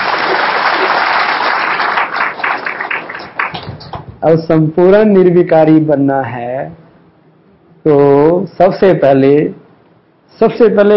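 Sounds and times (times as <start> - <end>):
audience clapping: 0.0 - 4.2
speech: 4.2 - 6.8, 7.8 - 9.6, 10.3 - 10.9.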